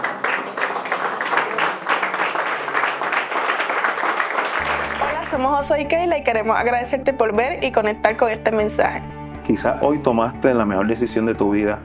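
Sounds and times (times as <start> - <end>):
audience applause: 0.0 - 5.4
speech: 5.4 - 11.8.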